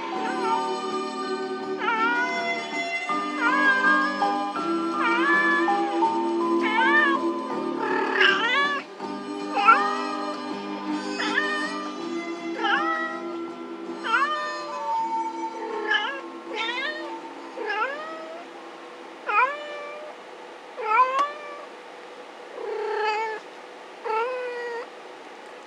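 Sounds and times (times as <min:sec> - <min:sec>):
rescued cat meowing: 0:00.2 - 0:01.1, 0:01.8 - 0:10.4, 0:11.0 - 0:13.4, 0:14.0 - 0:18.5, 0:19.2 - 0:20.2, 0:20.8 - 0:21.7, 0:22.6 - 0:23.4, 0:24.0 - 0:24.9.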